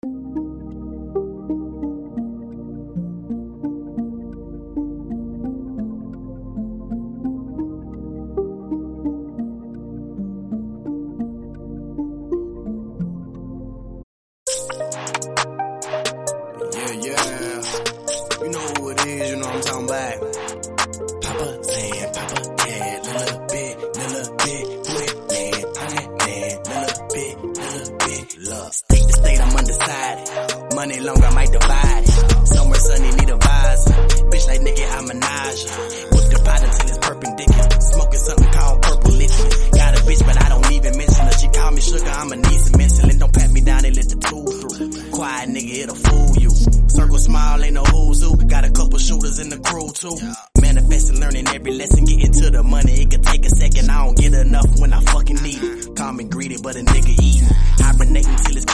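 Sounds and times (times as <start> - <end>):
remix music: 0.0 - 13.6, 14.5 - 58.7.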